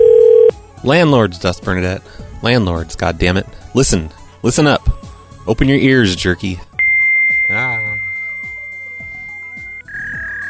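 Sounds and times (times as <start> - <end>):
fax machine tones over phone line: 0.0 - 0.5, 6.8 - 10.4
speech: 0.8 - 6.7.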